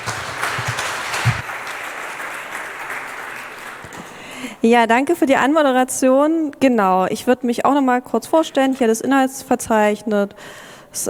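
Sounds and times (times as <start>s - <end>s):
audience applause: 0.0s - 4.4s
speech: 4.6s - 11.0s.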